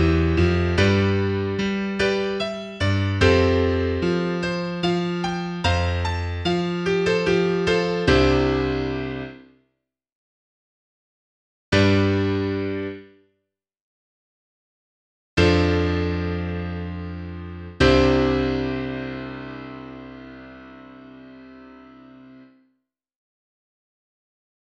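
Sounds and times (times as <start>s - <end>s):
piano piece: 0.0s - 9.5s, 11.7s - 13.2s, 15.4s - 22.6s.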